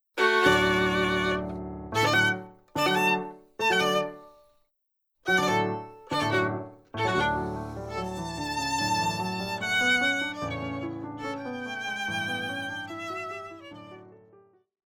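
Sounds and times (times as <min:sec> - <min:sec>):
violin sonata: 0:00.2 - 0:04.4, 0:05.3 - 0:14.3.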